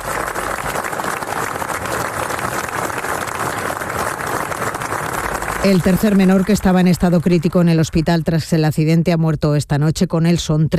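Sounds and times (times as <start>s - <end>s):
large crowd applauding: 0.0s - 8.6s
speech: 5.6s - 10.7s.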